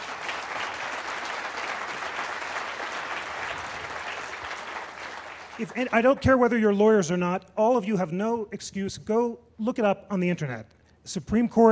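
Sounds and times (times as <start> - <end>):
audience applause: 0.0 - 6.0
speech: 5.6 - 11.7.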